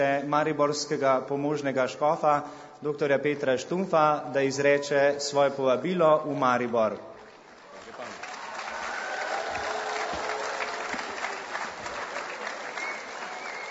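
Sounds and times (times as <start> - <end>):
speech: 0.0 - 7.1
audience applause: 7.4 - 13.6.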